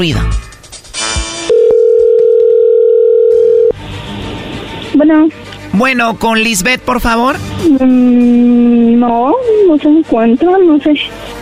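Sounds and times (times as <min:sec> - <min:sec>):
speech: 0:00.0 - 0:00.4, 0:05.0 - 0:11.2
telephone call being dialed: 0:01.6 - 0:03.7.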